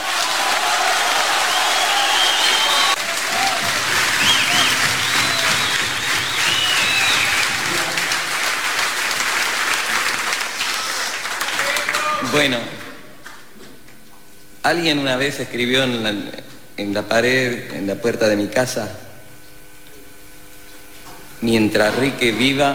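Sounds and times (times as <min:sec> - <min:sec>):
loud audience applause: 0:00.0 - 0:12.7
speech: 0:12.4 - 0:12.8, 0:14.7 - 0:19.0, 0:21.4 - 0:22.7.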